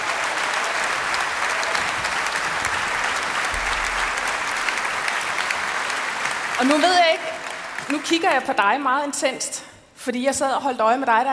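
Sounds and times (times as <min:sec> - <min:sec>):
audience applause: 0:00.0 - 0:08.6
speech: 0:06.6 - 0:07.3, 0:07.9 - 0:11.3.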